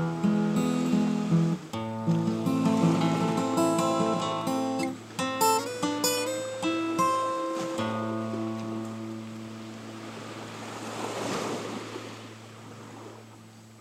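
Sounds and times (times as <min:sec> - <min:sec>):
guitar: 0:00.0 - 0:10.8.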